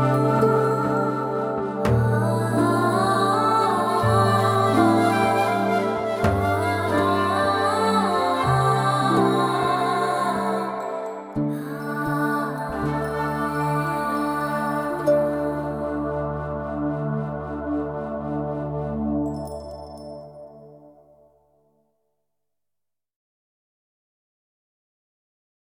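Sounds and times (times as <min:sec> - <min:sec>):
waltz music: 0:00.0 - 0:20.1.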